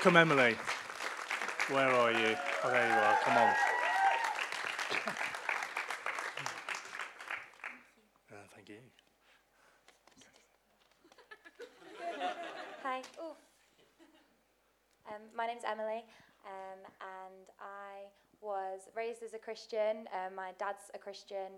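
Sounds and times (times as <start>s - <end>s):
speech: 0.0s - 0.8s, 1.7s - 3.7s, 19.3s - 21.5s
audience clapping: 0.0s - 8.0s
laughter: 4.8s - 5.6s, 11.0s - 13.0s.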